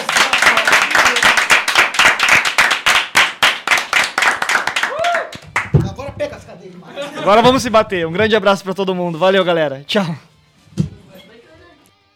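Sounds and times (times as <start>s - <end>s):
loud rapid hand clapping from a few people: 0.0s - 5.9s
brief rising vocal whoop: 4.8s - 5.4s
laughter: 6.6s - 7.9s
speech: 7.2s - 10.3s.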